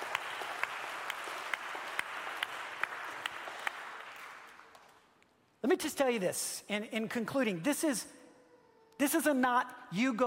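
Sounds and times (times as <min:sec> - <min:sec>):
crowd clapping: 0:00.0 - 0:05.2
speech: 0:05.6 - 0:08.2, 0:09.0 - 0:10.2.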